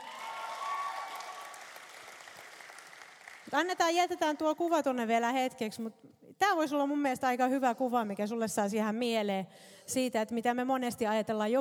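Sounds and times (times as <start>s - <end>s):
audience applause: 0.0s - 3.5s
speech: 3.5s - 11.5s.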